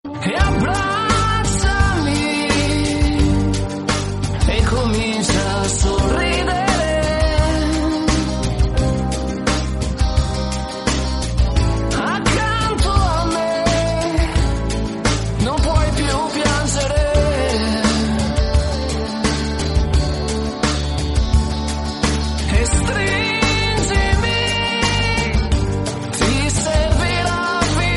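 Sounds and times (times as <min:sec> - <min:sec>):
Italian song: 0:00.0 - 0:27.9.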